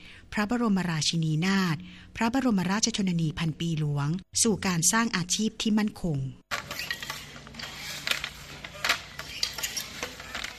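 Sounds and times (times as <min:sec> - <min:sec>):
speech: 0:00.3 - 0:06.4
Kī krathop handloom weaving cloth in Sai Buri, Pattani, Thailand: 0:06.5 - 0:10.5.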